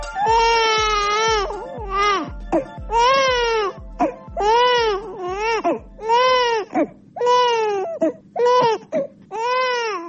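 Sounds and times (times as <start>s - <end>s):
baby crying in Bosnia and Herzegovina: 0.1s - 10.0s.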